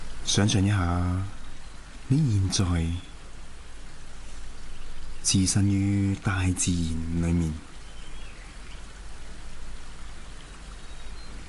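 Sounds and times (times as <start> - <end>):
flowing water: 0.0 - 11.4
speech: 0.3 - 1.4, 2.1 - 3.1, 5.2 - 7.7.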